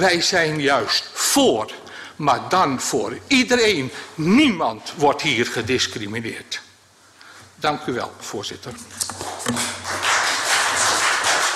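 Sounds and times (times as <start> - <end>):
speech: 0.0 - 6.6, 7.6 - 9.6
applause in council chamber: 9.1 - 11.5.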